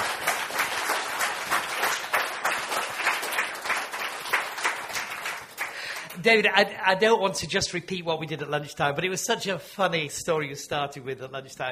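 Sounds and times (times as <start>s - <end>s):
audience applause welcoming a guest: 0.0s - 6.2s
speech: 6.2s - 11.7s.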